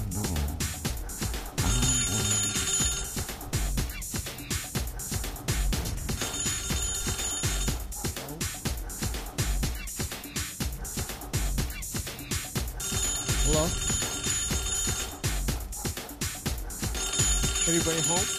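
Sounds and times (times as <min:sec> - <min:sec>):
loud music with a steady beat: 0:00.0 - 0:18.3
telephone ringing: 0:01.6 - 0:03.6, 0:06.2 - 0:07.9, 0:12.8 - 0:15.4, 0:16.8 - 0:18.3
speech: 0:17.8 - 0:18.3.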